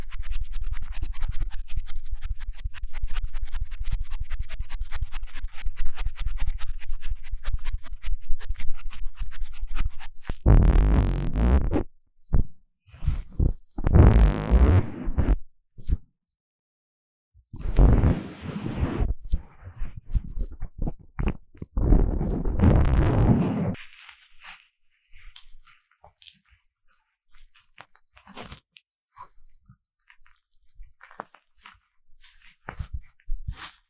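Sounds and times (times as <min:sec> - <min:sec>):
deep ear cleaning scratching and rubbing: 0:00.0 - 0:11.8, 0:13.4 - 0:15.4, 0:17.8 - 0:24.7
low rumble with fine crackle: 0:10.1 - 0:11.9, 0:17.6 - 0:23.8.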